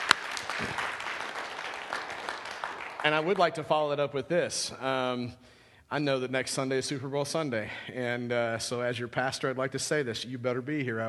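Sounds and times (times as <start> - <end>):
audience round of applause: 0.0 - 3.8
speech: 3.0 - 11.0.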